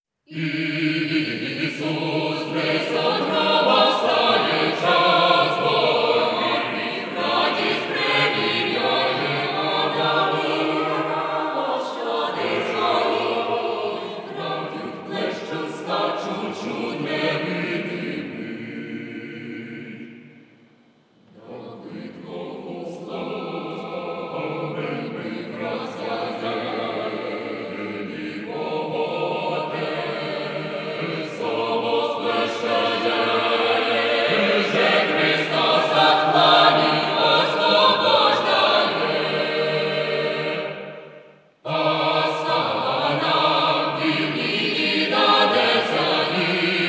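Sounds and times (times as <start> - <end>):
Ukrainian folk group Easter chant: 0.3 - 20.5, 21.3 - 46.8.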